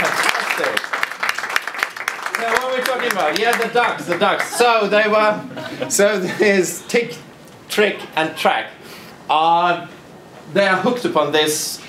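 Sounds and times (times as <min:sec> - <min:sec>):
audience applause: 0:00.0 - 0:04.8
speech: 0:03.0 - 0:11.8
laughter: 0:04.0 - 0:06.7.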